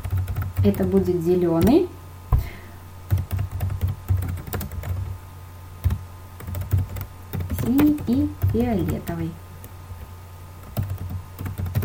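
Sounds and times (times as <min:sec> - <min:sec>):
typing on a computer keyboard: 0:00.0 - 0:01.0, 0:03.1 - 0:05.1, 0:05.8 - 0:09.2, 0:10.6 - 0:11.8
low steady hum: 0:00.0 - 0:11.8
speech: 0:00.6 - 0:02.0, 0:07.7 - 0:09.4.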